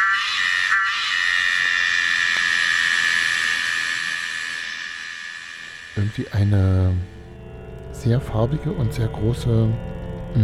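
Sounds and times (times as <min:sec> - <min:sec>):
Tosena melanopteryx cicada calling: 0:00.0 - 0:07.4
speech: 0:06.0 - 0:07.2, 0:08.0 - 0:10.4.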